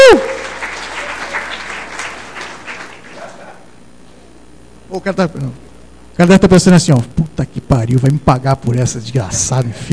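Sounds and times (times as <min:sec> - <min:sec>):
crowd clapping: 0:00.0 - 0:03.6
speech: 0:04.9 - 0:09.9.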